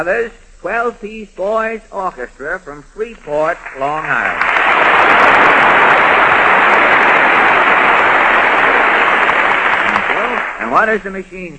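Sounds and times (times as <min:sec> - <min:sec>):
speech: 0:00.0 - 0:06.4, 0:10.7 - 0:11.5
audience applause: 0:03.5 - 0:10.8.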